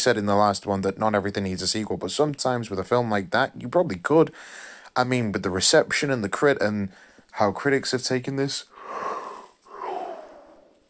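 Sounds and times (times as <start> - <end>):
speech: 0.0 - 9.2
yawn: 8.7 - 10.8.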